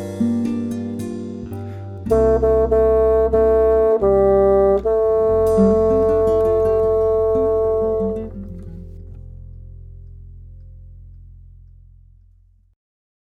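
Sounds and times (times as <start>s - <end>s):
bassoon: 1.7s - 9.2s.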